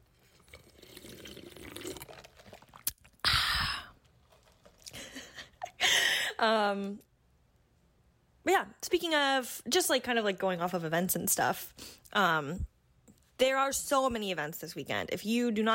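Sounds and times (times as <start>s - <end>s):
sipping coffee: 0.0s - 5.3s
speech: 6.4s - 7.1s, 8.5s - 12.7s, 13.4s - 15.7s.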